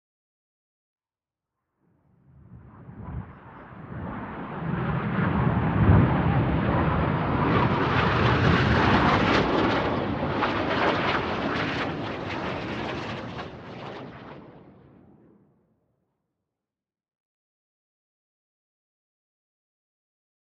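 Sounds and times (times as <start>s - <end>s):
Falcon 20 jet plane overhead: 2.2s - 15.6s.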